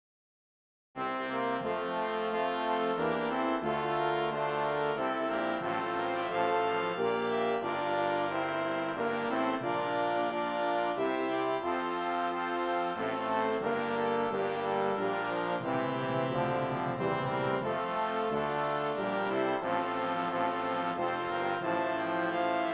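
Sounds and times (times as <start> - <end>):
brass instruments: 1.0 - 22.7.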